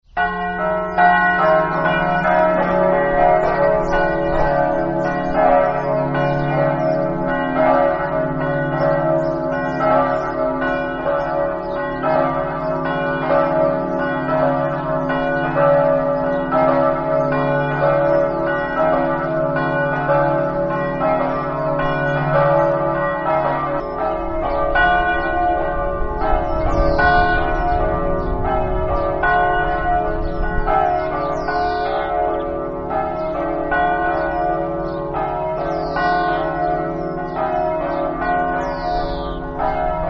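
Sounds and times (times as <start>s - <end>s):
bells ringing: 0.1s - 40.0s.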